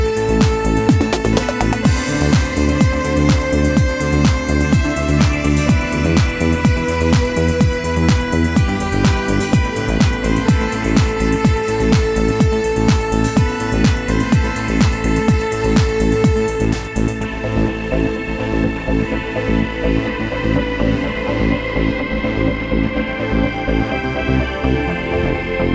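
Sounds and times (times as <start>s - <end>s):
trance waves: 0.2s - 25.6s.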